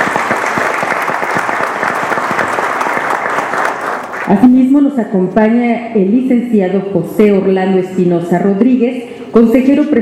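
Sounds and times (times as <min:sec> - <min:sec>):
audience applause: 0:00.0 - 0:04.4
speech: 0:04.3 - 0:10.0.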